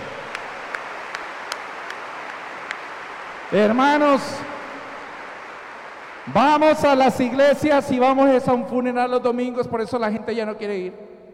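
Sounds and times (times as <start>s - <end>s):
audience applause: 0.0s - 7.9s
speech: 3.5s - 4.5s, 6.3s - 11.1s.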